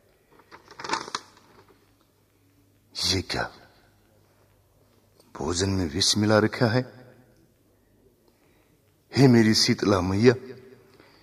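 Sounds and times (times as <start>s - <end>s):
piece of paper found in food being unfolded: 0.3s - 2.0s
speech: 3.1s - 3.6s, 5.4s - 7.0s, 9.2s - 10.6s.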